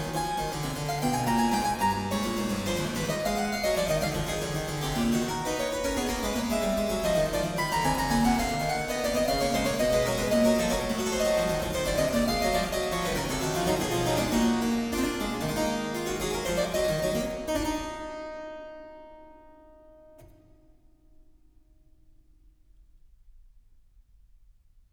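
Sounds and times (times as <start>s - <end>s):
violin and harpsichord sonata allegro: 0.0s - 18.1s.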